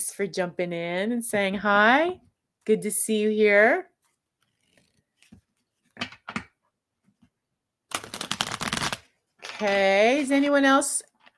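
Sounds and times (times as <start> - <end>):
speech: 0.0 - 3.9, 9.6 - 11.1
clarity cards being pulled from a deck: 7.9 - 9.6.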